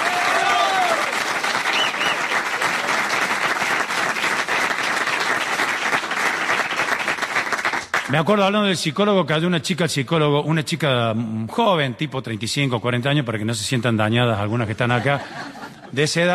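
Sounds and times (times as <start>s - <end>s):
audience applause: 0.0s - 8.1s
speech: 8.1s - 16.3s
laughter: 14.8s - 16.3s.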